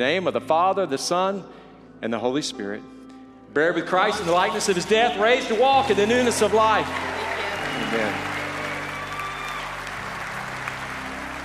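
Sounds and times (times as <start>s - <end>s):
speech: 0.0s - 7.1s, 7.8s - 8.3s
crowd clapping: 4.1s - 11.4s.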